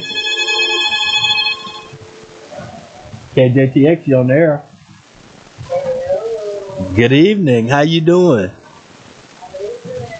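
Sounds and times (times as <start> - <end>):
telephone ringing with an incoming call to a radio station: 0.0 - 2.3
speech: 3.4 - 4.7, 7.0 - 8.6.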